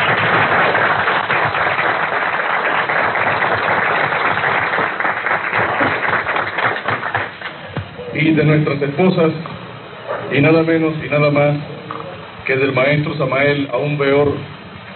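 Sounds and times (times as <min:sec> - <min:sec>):
audience applause: 0:00.0 - 0:07.8
speech: 0:08.4 - 0:09.5, 0:10.3 - 0:11.7, 0:12.5 - 0:14.6.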